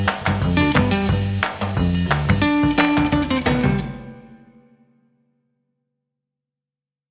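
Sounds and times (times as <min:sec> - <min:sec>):
frantic swinging 1960s underscore music: 0:00.2 - 0:04.4.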